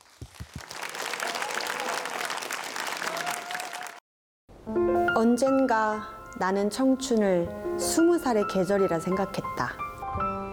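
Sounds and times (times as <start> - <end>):
audience applause: 0.0 - 4.0
speech: 4.7 - 9.8.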